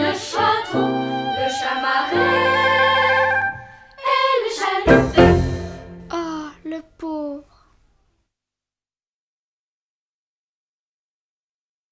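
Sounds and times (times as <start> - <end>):
polka song vocal version: 0.0 - 7.4.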